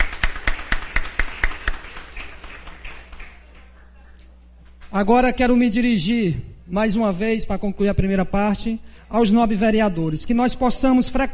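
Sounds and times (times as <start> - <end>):
applause in council chamber: 0.0 - 4.0
speech: 4.9 - 11.3.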